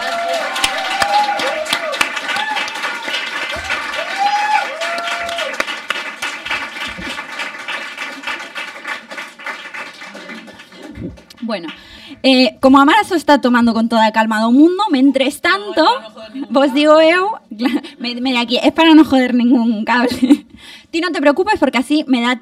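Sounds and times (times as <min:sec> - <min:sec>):
cheers: 0:00.0 - 0:07.1
audience applause: 0:00.0 - 0:11.9
speech: 0:11.5 - 0:22.4
laughter: 0:15.5 - 0:18.2.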